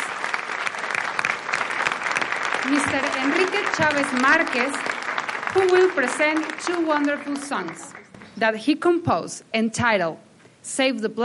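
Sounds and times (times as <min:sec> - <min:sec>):
audience applause: 0:00.0 - 0:08.2
speech: 0:02.6 - 0:04.9, 0:05.5 - 0:11.2.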